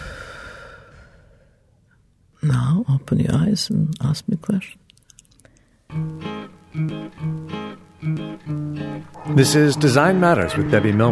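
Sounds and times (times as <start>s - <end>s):
deep breath out: 0.0s - 1.7s
speech: 2.5s - 4.8s, 9.4s - 11.1s.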